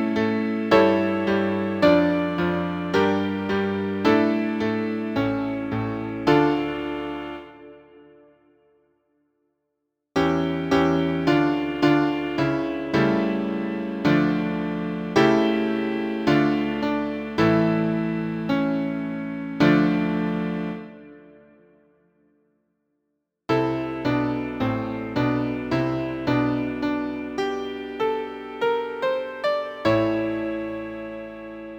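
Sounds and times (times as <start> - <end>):
grave piano: 0.0 - 8.6, 10.2 - 21.9, 23.5 - 31.7.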